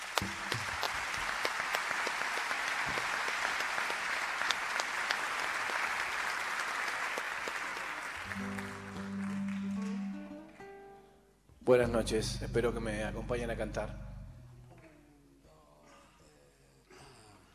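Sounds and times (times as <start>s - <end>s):
audience applause: 0.0s - 10.8s
speech: 11.7s - 14.1s.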